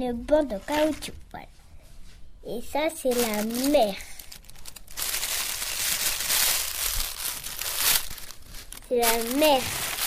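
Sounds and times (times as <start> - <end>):
speech: 0.0 - 1.5, 2.4 - 4.1, 8.9 - 9.8
shiny gold paper crinkling in a child's craft: 3.0 - 10.0.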